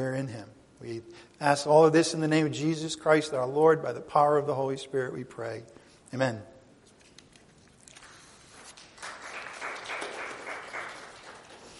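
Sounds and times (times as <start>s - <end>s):
speech: 0.2s - 6.5s
audience clapping: 7.9s - 11.7s.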